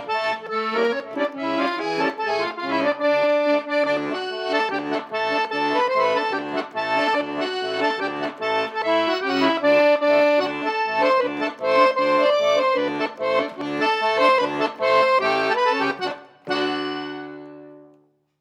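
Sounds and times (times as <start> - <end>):
harmonica: 0.0 - 17.8.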